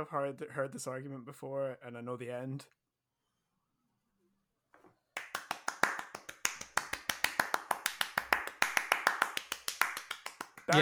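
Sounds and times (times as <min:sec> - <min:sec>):
speech: 0:00.0 - 0:02.8, 0:10.7 - 0:10.8
quick hand clap: 0:05.2 - 0:10.8.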